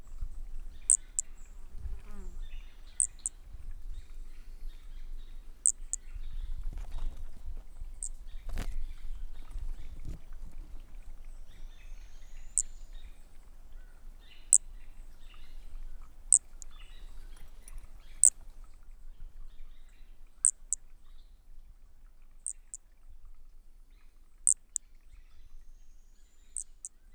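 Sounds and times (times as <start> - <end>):
faint bird chirps and whistles: 0.0 - 21.4, 22.0 - 27.1
Brachycephalus frog high-pitched calls: 0.8 - 1.3, 2.9 - 3.4, 5.6 - 6.1, 26.6 - 27.0.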